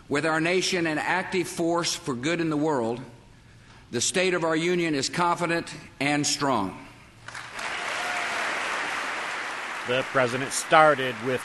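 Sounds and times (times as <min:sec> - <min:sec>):
speech: 0:00.1 - 0:03.2, 0:03.9 - 0:07.4, 0:09.8 - 0:11.4
Republicans clapping during a presidential State of the Union address: 0:07.2 - 0:11.4.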